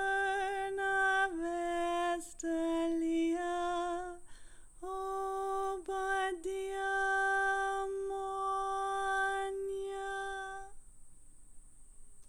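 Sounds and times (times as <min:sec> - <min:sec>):
high harmony singing of a boat song on so: 0:00.0 - 0:10.8.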